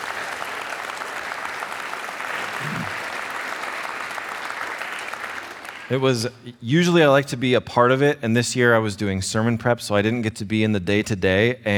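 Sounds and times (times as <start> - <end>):
audience applauding: 0.0 - 6.2
speech: 5.9 - 11.7.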